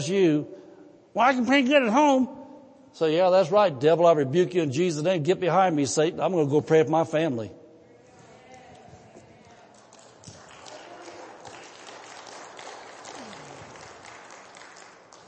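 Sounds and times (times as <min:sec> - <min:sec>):
speech: 0:00.0 - 0:00.6, 0:01.2 - 0:07.6
faint audience clapping: 0:09.6 - 0:15.2.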